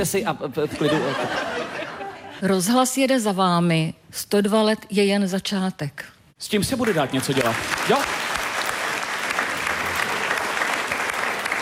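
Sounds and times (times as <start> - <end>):
speech: 0.0 - 1.8, 2.4 - 8.2
laughter: 0.6 - 2.4
small group clapping: 6.6 - 11.6.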